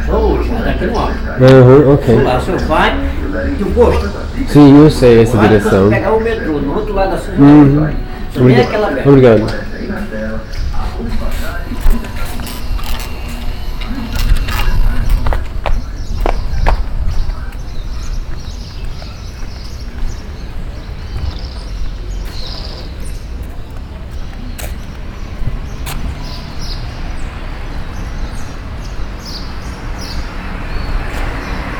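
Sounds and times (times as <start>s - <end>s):
street ambience at a padaria in Brazil: 0.0s - 31.7s.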